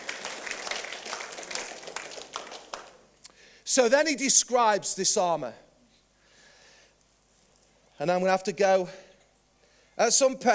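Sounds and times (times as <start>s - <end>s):
crowd clapping: 0.0s - 3.2s
speech: 3.7s - 5.6s, 8.0s - 9.1s, 10.0s - 10.5s.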